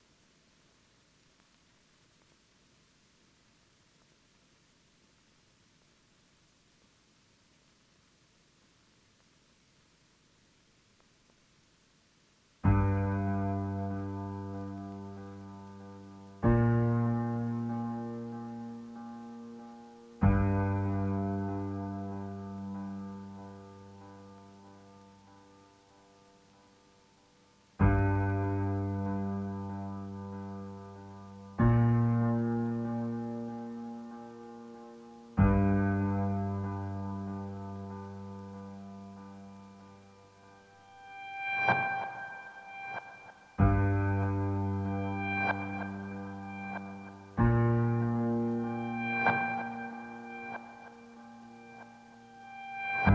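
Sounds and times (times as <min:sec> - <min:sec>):
piano: 0:12.6 - 0:53.1.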